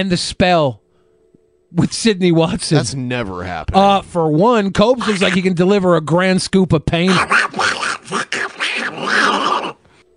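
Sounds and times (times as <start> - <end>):
speech: 0.0 - 0.8, 1.7 - 8.3
man doing a raspy Donald Duck-style voice: 4.9 - 5.5, 7.0 - 9.9.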